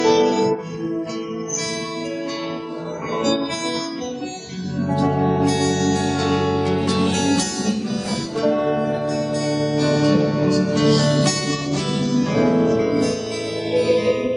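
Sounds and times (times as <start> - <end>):
free accompaniment music: 0.0 - 14.3.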